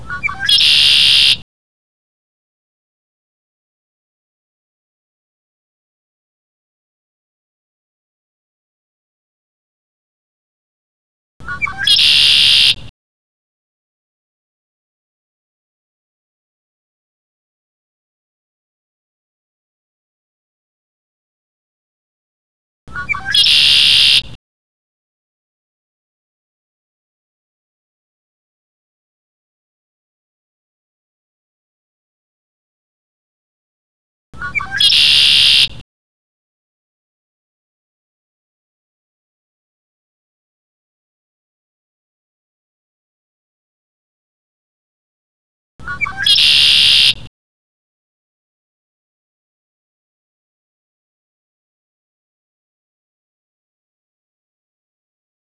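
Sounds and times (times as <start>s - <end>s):
conklaree birdsong: 0.0s - 1.4s, 11.4s - 12.9s, 22.9s - 24.4s, 34.4s - 35.8s, 45.8s - 47.3s.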